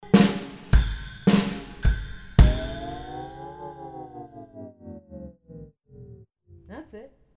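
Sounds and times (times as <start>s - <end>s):
lullaby: 0.0s - 4.8s.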